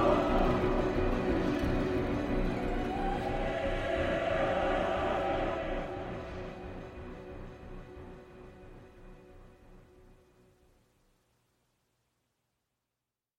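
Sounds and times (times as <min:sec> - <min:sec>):
choir singing: 0:00.0 - 0:07.2.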